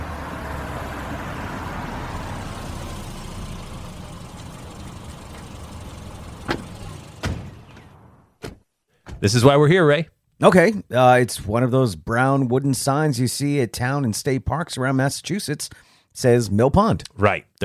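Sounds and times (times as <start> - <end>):
car pulling over and stopping: 0.0 - 8.4
speech: 9.2 - 17.6.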